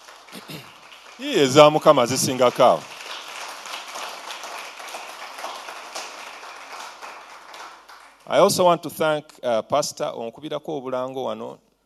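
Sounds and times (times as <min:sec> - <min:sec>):
audience applause: 0:00.0 - 0:08.5
speech: 0:00.3 - 0:03.0, 0:08.3 - 0:11.7.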